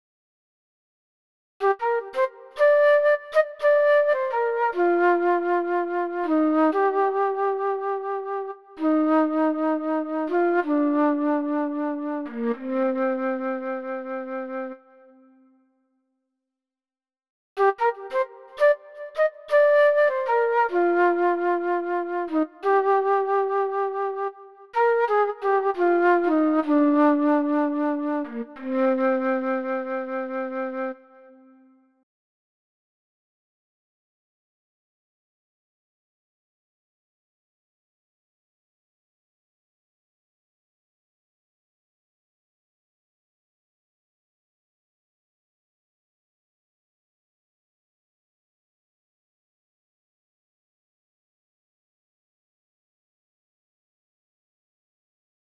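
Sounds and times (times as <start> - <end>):
flute: 1.6 - 15.6, 17.6 - 32.0.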